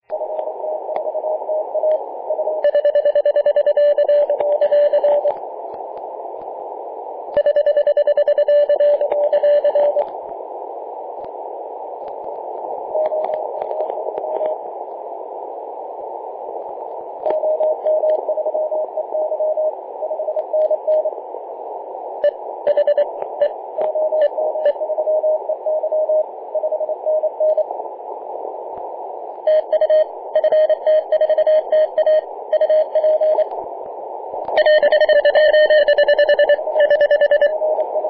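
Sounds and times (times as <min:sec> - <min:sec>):
morse code CW signal on 3.523 MHz: 0:00.2 - 0:05.4, 0:07.3 - 0:10.1, 0:12.9 - 0:14.6, 0:17.2 - 0:21.1, 0:22.2 - 0:27.7, 0:29.4 - 0:33.5, 0:34.6 - 0:38.0.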